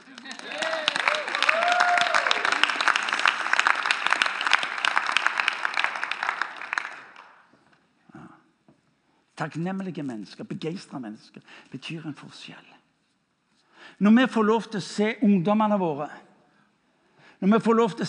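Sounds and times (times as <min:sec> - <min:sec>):
audience applause: 0:00.0 - 0:07.4
speech: 0:09.4 - 0:12.7, 0:14.0 - 0:16.3, 0:17.4 - 0:18.0.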